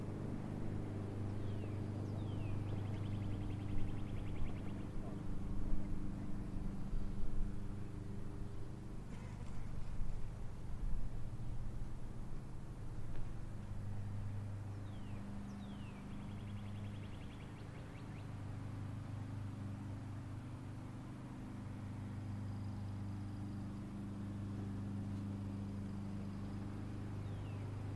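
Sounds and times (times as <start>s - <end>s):
birds in suburbs on a spring day: 0.0s - 7.3s, 13.1s - 19.3s, 22.4s - 27.9s
lawnmowers running in suburbs on a spring day: 0.0s - 27.9s.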